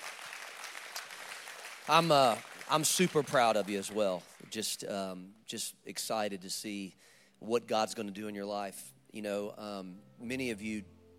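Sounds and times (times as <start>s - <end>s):
audience hand clapping: 0.0s - 4.7s
speech: 1.9s - 11.0s.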